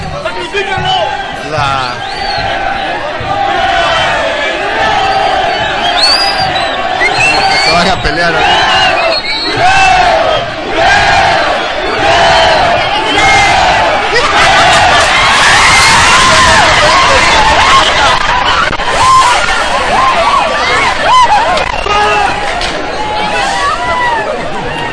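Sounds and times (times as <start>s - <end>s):
crowd shouting and running from firework bull: 0.0s - 24.9s.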